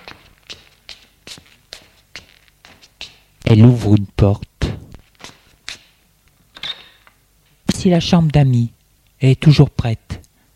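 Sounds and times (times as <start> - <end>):
footsteps walking down a corridor: 0.0 - 4.0, 4.6 - 6.0
speech: 3.5 - 4.5, 7.8 - 10.2.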